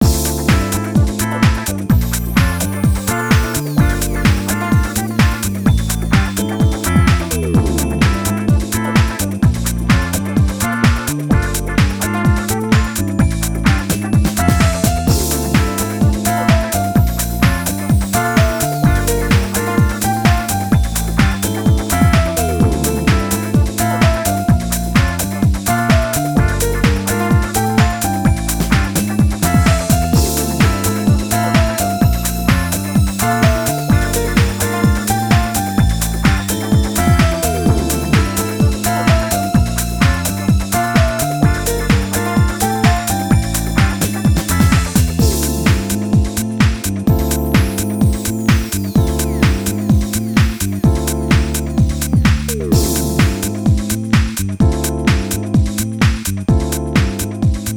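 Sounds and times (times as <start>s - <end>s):
instrumental music: 0.0s - 57.7s.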